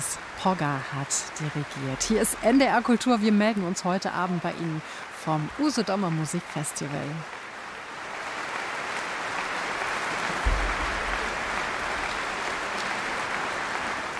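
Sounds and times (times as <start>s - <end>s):
speech: 0.1s - 7.4s
large audience applause: 6.1s - 14.1s
low thump: 10.4s - 11.9s.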